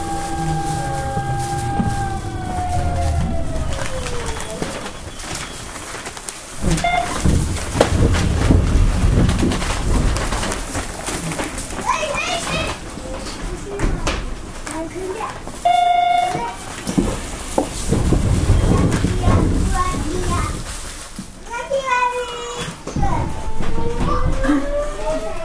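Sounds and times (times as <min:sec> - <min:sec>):
short steady tone: 0:00.0 - 0:03.9
train motor whine as it slows and speeds up: 0:00.0 - 0:05.4
Hanshin Electric Railway 5500 series train rumble and rattle: 0:00.0 - 0:25.4.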